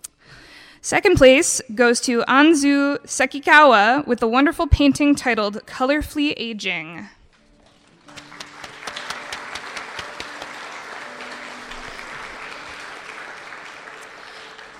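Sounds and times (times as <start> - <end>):
speech: 0.8 - 7.2
audience applause: 7.6 - 14.7.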